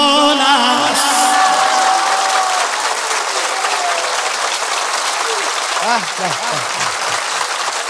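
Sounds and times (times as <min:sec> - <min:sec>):
voices chanting: 0:00.0 - 0:02.6
audience applause at a religious celebration on Imam Ali's birth night: 0:00.6 - 0:07.8
laughter: 0:05.3 - 0:07.6
speech: 0:06.0 - 0:06.7.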